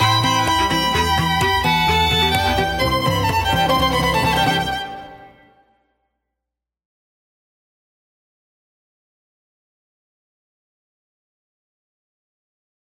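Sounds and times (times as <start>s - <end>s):
instrumental music: 0.0s - 5.8s.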